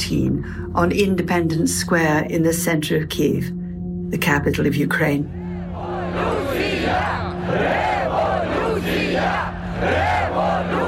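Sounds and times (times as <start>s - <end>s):
speech: 0.1s - 5.4s
protesting crowd chanting: 5.4s - 10.8s.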